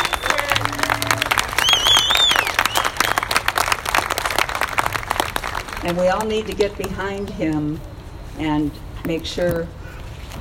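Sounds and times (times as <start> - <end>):
audience applause: 0.0 - 6.0
speech: 5.8 - 9.8.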